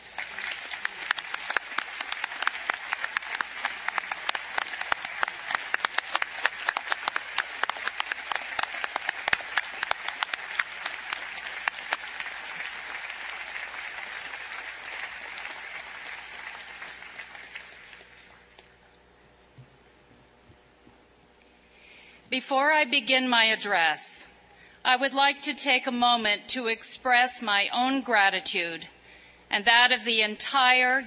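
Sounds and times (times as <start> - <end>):
sustained applause from a large audience: 0.0 - 18.5
speech: 22.4 - 24.1, 24.9 - 31.0.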